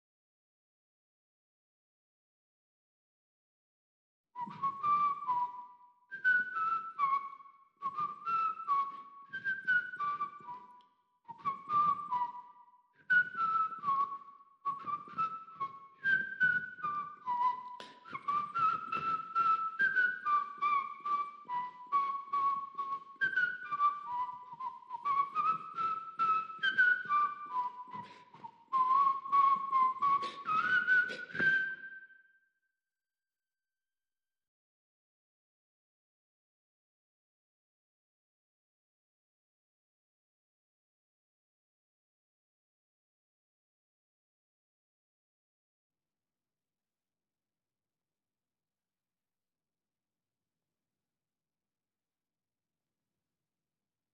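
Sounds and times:
whistle: 0:04.4 - 0:32.6.

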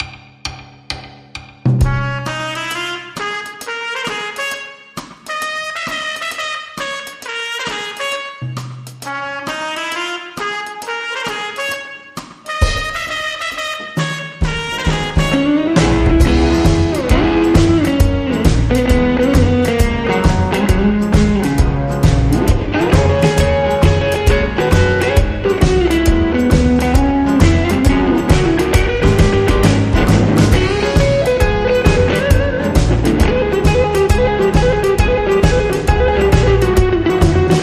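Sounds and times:
instrumental music: 0:00.0 - 0:37.6.

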